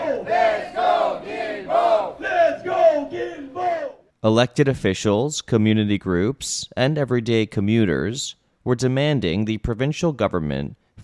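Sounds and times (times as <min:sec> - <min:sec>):
protesters chanting outside metro station: 0:00.0 - 0:04.0
speech: 0:04.2 - 0:11.0.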